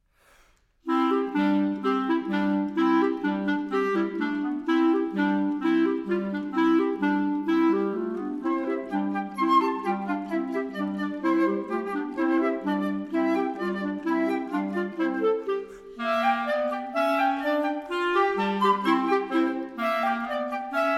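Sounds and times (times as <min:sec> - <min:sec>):
flute: 0:00.8 - 0:20.9.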